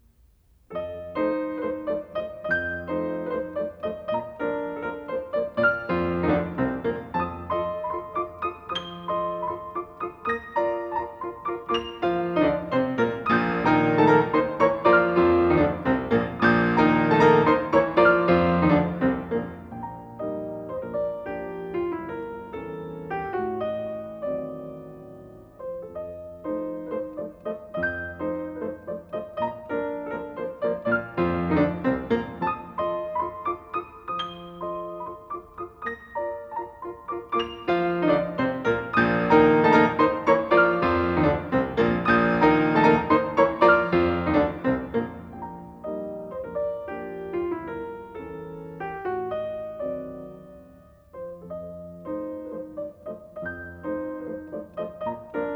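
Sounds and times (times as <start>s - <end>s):
piano piece: 0.0s - 55.5s.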